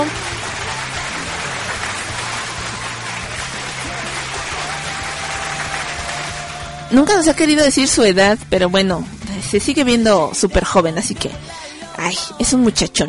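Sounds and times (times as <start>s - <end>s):
applause: 0.0s - 6.9s
speech: 6.9s - 13.0s.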